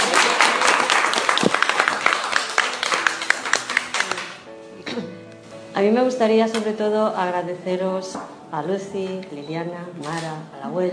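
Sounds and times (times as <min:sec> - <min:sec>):
audience applause: 0:00.0 - 0:04.4
speech: 0:05.8 - 0:10.9.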